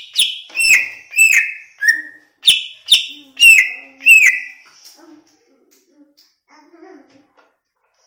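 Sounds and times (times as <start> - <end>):
greater green leafbird whistling song: 0.0 - 4.6.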